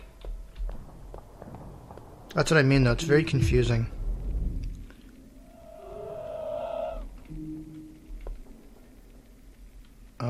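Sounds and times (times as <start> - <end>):
video game footsteps: 0.0 - 10.2
speech: 2.3 - 4.0.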